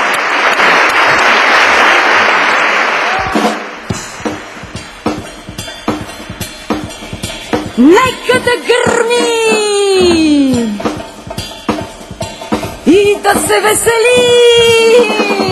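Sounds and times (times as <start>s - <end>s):
hand clapping: 0.0s - 4.4s
speech: 7.8s - 10.8s, 12.9s - 15.4s.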